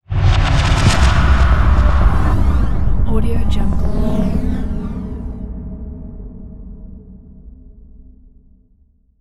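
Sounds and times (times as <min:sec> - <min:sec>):
bloody nightmare horror stingers: 0:00.1 - 0:05.8.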